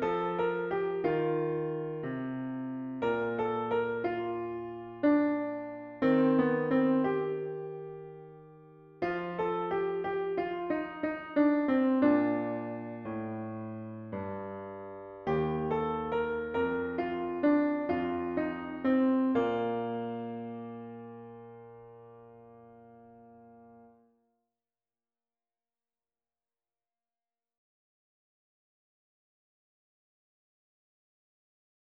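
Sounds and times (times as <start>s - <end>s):
piano: 0.0s - 24.2s.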